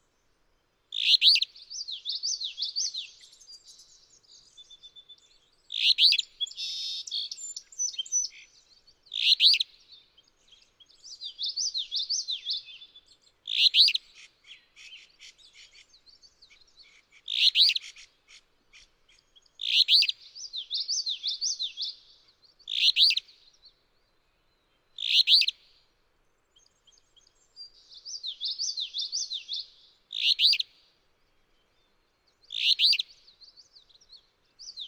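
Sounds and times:
Alder Flycatcher calling: 0.9s - 3.4s, 5.7s - 8.4s, 9.1s - 9.6s, 13.5s - 14.0s, 17.3s - 18.1s, 19.6s - 21.9s, 22.7s - 23.2s, 25.0s - 25.6s, 27.8s - 30.7s, 32.5s - 33.1s.

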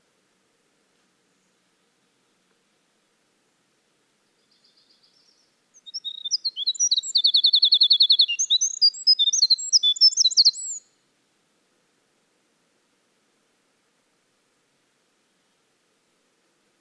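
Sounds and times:
Winter wren in full song: 4.5s - 10.8s.

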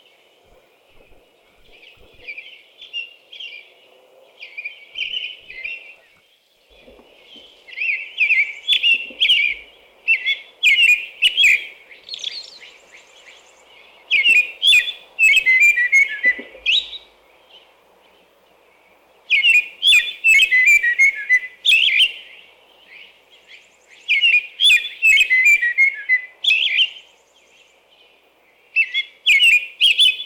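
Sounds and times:
American robin whistling song: 7.3s - 17.1s, 19.3s - 22.4s, 23.4s - 27.0s, 28.7s - 30.2s.

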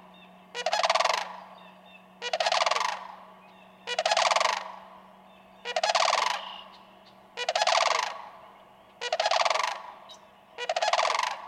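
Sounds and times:
faint low hum: 0.0s - 11.4s
sandhill crane bugle call: 2.2s - 4.9s, 5.6s - 6.8s, 7.4s - 10.0s, 10.6s - 11.4s.

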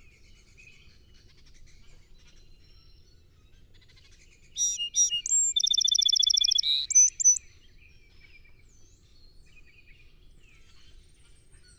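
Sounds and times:
song sparrow singing: 4.6s - 7.4s.

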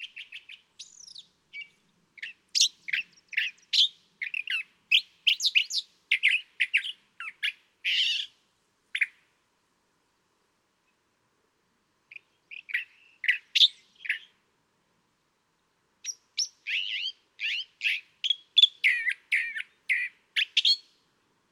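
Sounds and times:
California thrasher calling: 0.0s - 8.3s, 16.0s - 20.9s.

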